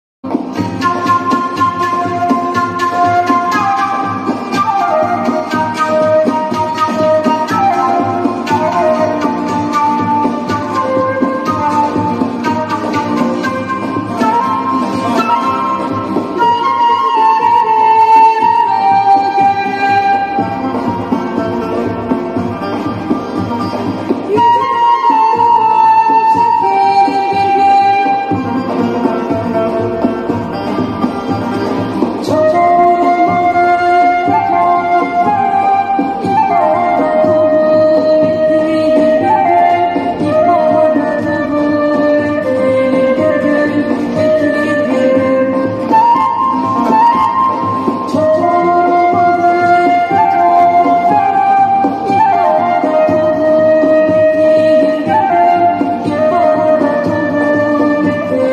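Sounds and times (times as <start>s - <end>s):
flute: 0.2s - 58.5s.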